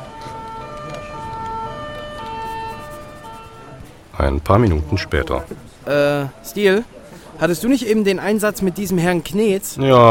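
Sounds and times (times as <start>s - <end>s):
police patrol car siren two-tone wail: 0.0s - 3.8s
low road rumble: 0.0s - 5.8s
speech: 4.2s - 10.0s.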